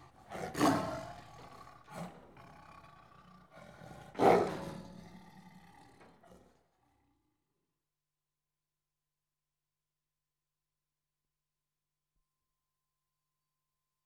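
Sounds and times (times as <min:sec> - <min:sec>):
tiger snarling and growling in Indian, Pakistani and Nepali countryside: 0:00.0 - 0:07.0.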